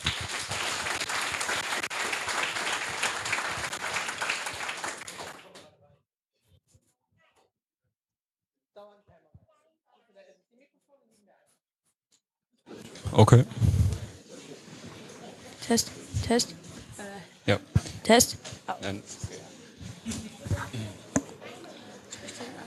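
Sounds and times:
audience applause: 0:00.0 - 0:05.7
speech: 0:13.2 - 0:13.8, 0:15.7 - 0:16.7, 0:17.5 - 0:19.3.

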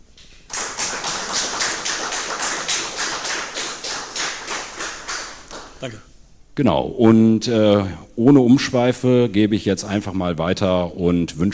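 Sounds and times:
audience applause: 0:00.5 - 0:05.9
speech: 0:05.8 - 0:11.5.

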